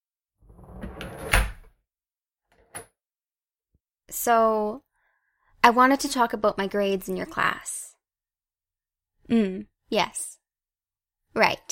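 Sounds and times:
door swinging shut with a rustling sweep and solid thud: 0.9s - 1.7s
speech: 4.1s - 4.9s, 5.6s - 7.9s, 9.3s - 10.4s, 11.4s - 11.7s.

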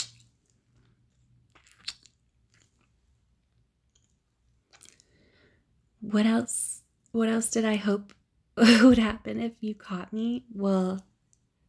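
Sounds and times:
wet chewing while tasting food: 0.0s - 3.0s, 3.8s - 5.1s
speech: 6.1s - 11.1s.

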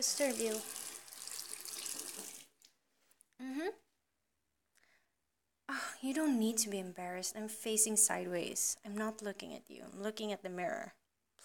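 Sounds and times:
speech: 0.0s - 0.8s, 3.4s - 3.8s, 5.7s - 11.4s
water running from a tap into a sink: 0.0s - 2.5s.

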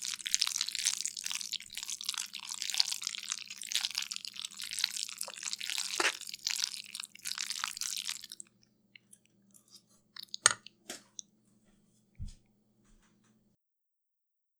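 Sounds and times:
slimy pasta stirring: 0.0s - 11.2s.

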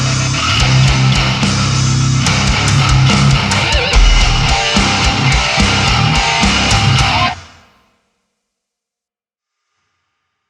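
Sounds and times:
instrumental melodic metalcore: 0.2s - 6.8s.

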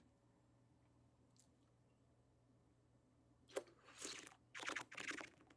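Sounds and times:
sucking: 3.5s - 5.5s.

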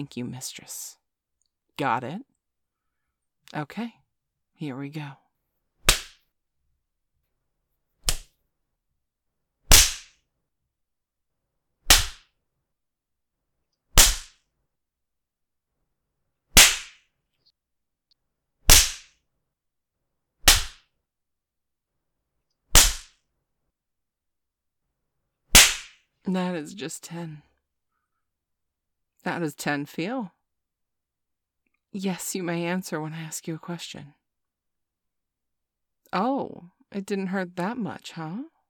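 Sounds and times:
speech: 0.0s - 1.0s, 1.8s - 2.3s, 3.5s - 4.0s, 4.6s - 5.2s, 26.3s - 27.5s, 29.2s - 30.4s, 31.9s - 34.2s, 36.1s - 38.5s
sharp spanks delivered by hand: 5.8s - 6.2s, 8.0s - 8.3s, 9.7s - 10.2s, 11.9s - 12.3s, 14.0s - 14.4s, 16.6s - 17.0s, 18.7s - 19.1s, 20.4s - 20.8s, 22.7s - 23.2s, 25.5s - 26.0s.

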